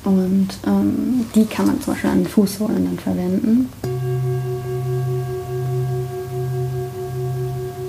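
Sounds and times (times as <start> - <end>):
speech: 0.0 - 4.0
universal singing bowl ringing: 3.9 - 7.8.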